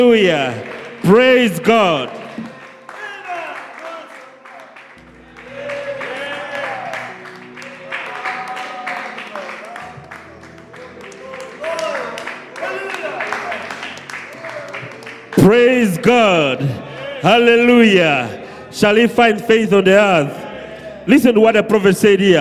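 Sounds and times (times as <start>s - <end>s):
speech: 0.0s - 2.2s, 15.4s - 20.4s, 21.0s - 22.3s
audience clapping: 0.0s - 16.8s.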